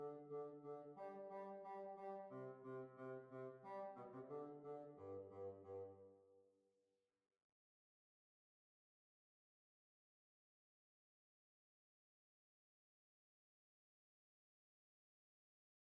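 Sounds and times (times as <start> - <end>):
hornpipe tune: 0.0 - 6.0.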